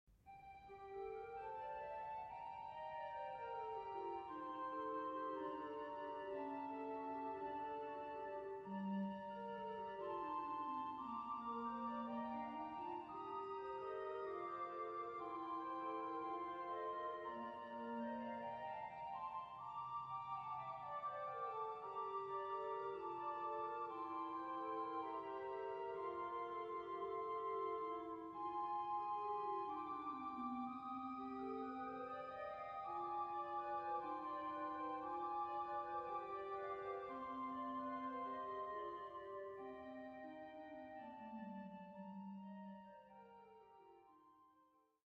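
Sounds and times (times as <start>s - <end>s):
Passiontide organ music: 0.4s - 43.9s.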